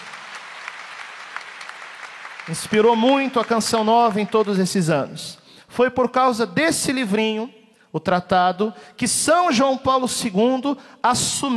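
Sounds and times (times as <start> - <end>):
audience applause: 0.0 - 4.8
speech: 2.5 - 11.5.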